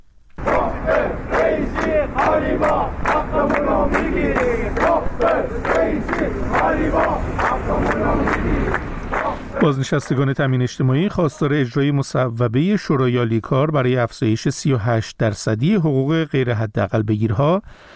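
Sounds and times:
crowd of retirees chanting slogans in Ahvaz: 0.4s - 9.9s
speech: 9.6s - 17.9s.

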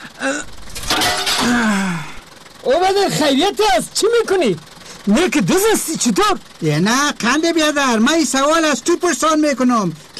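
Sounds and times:
person groaning and gasping: 0.0s - 0.6s, 1.4s - 2.2s
pane of door glass being smashed: 0.6s - 1.7s
speech: 2.7s - 10.1s.

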